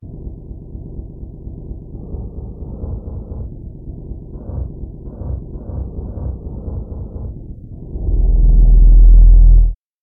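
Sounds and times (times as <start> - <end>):
shakuhachi bass: 8.0 - 9.8.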